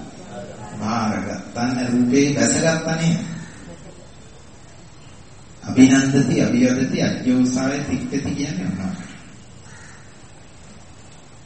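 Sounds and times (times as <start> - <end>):
hiss: 0.0 - 11.4
speech: 0.8 - 3.3, 5.8 - 9.1
crow cawing: 3.2 - 4.4, 8.8 - 10.5.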